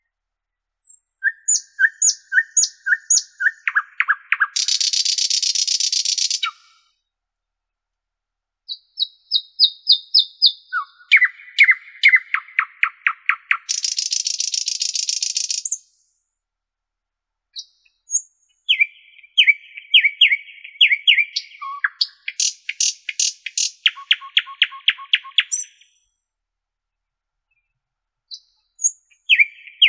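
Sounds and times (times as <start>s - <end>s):
Common nightingale singing: 0.8s - 7.0s, 8.7s - 16.2s, 17.5s - 26.2s, 27.5s - 29.8s.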